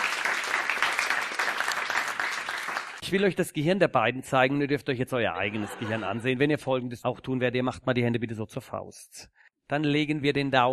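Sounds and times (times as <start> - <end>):
audience applause at a live stage show: 0.0 - 3.0
speech: 3.1 - 10.7
laughter: 5.3 - 6.5.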